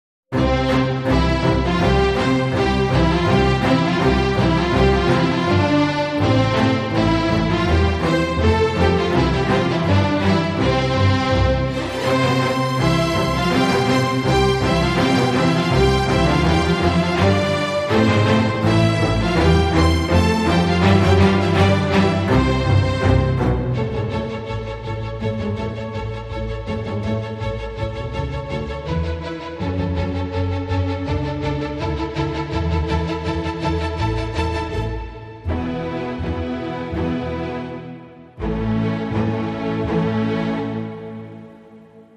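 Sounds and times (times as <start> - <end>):
strings: 0.3 - 42.1.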